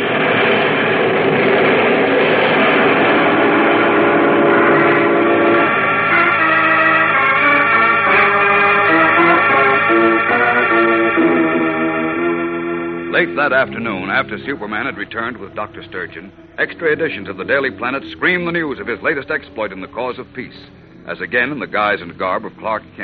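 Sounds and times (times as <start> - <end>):
steady mechanical rumble of trains: 0.0 - 23.0
train whistle and horn tones at a railroad station: 3.0 - 21.2
speech: 13.2 - 23.0.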